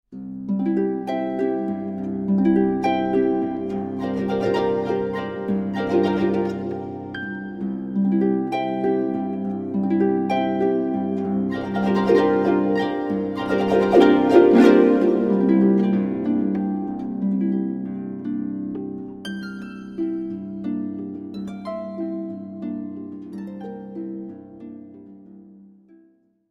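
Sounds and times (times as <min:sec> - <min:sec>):
harp: 0:00.1 - 0:26.2.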